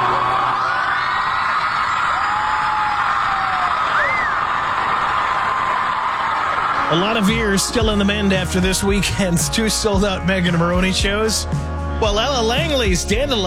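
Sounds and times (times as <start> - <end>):
high yells and whoops: 0.0 - 6.9
packed concert crowd cheering: 0.0 - 8.8
speech: 6.9 - 13.4.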